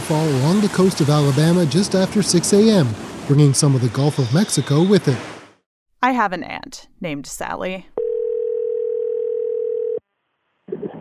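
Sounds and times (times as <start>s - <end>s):
speech: 0.1s - 5.4s, 6.0s - 8.0s
telephone dial tone: 8.0s - 10.0s.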